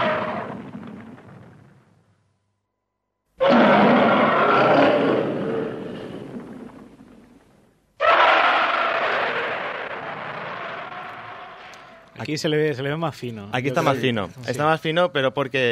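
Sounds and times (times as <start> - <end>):
giant ape monster roaring film sound effect: 3.4 - 7.0, 8.0 - 12.0
speech: 12.3 - 15.7.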